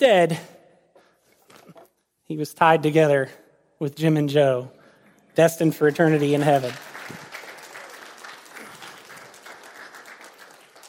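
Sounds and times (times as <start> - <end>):
speech: 0.0 - 0.5, 2.3 - 4.8, 5.4 - 7.2
audience clapping: 5.6 - 10.8.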